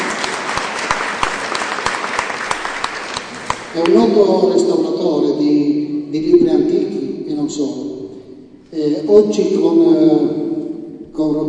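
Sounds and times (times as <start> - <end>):
audience applause: 0.0 - 4.1
speech: 3.8 - 8.0, 8.7 - 10.4, 11.2 - 11.4.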